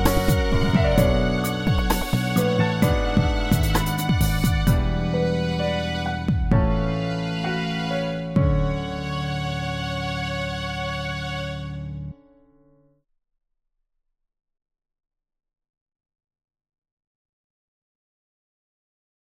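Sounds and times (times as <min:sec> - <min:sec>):
string instruments: 0:00.0 - 0:12.2.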